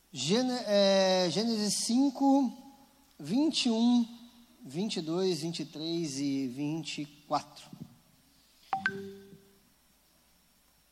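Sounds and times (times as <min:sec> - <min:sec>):
speech: 0:00.1 - 0:02.6, 0:03.2 - 0:07.8, 0:08.9 - 0:09.2
WhatsApp notification chime on someone's phone: 0:08.8 - 0:09.5.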